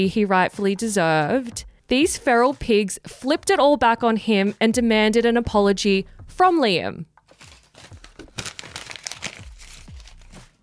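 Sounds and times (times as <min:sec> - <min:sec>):
speech: 0:00.0 - 0:07.1
rustling paper notes being checked: 0:07.3 - 0:10.6.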